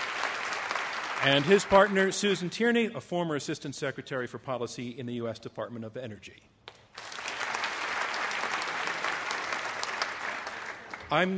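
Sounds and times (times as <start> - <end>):
audience applause: 0.0 - 2.2, 7.0 - 11.3
speech: 1.2 - 6.6, 11.1 - 11.3.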